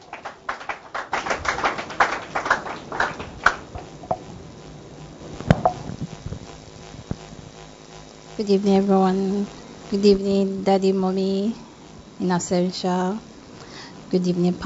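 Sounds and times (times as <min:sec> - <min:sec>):
audience applause for a speaker at a church gathering: 0:00.0 - 0:03.8
speech: 0:08.4 - 0:11.6, 0:12.2 - 0:13.3, 0:14.1 - 0:14.6.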